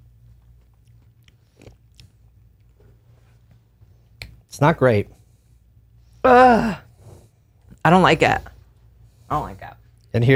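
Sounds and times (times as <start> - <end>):
biting and chewing a piece of fruit: 0.0 - 2.8
steady low hum: 0.0 - 10.3
speech: 4.6 - 5.2, 6.2 - 6.8, 7.8 - 8.5, 9.3 - 10.3.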